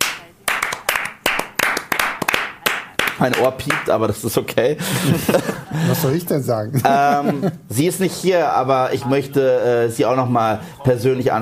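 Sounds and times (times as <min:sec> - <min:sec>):
audience applause: 0:00.0 - 0:03.9
speech: 0:03.2 - 0:11.4
laughter: 0:04.8 - 0:07.7.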